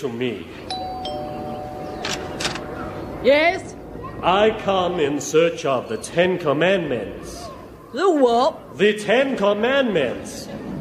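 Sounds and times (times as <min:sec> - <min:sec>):
speech: 0:00.0 - 0:00.7, 0:03.2 - 0:10.6
doorbell chimes: 0:00.7 - 0:04.2.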